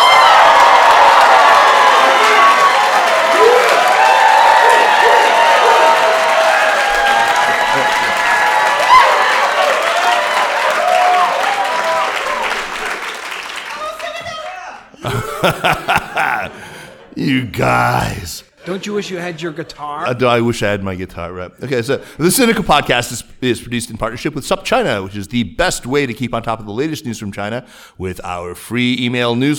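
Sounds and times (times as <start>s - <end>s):
cheering and whistles from an audience at Schwarzman College, Tsinghua University in Beijing: 0.0s - 13.5s
applause from an audience of scholars and friends at a live event: 0.0s - 18.2s
laughter: 4.6s - 8.6s, 14.9s - 20.3s
speech: 15.4s - 15.8s, 17.2s - 29.5s.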